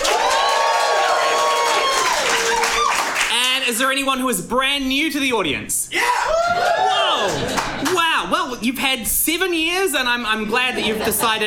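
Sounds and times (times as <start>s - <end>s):
live audience cheering and whooping at a comedy show: 0.0s - 3.3s, 6.0s - 7.9s
speech: 3.7s - 11.4s
laughter: 6.2s - 8.0s, 10.6s - 11.4s.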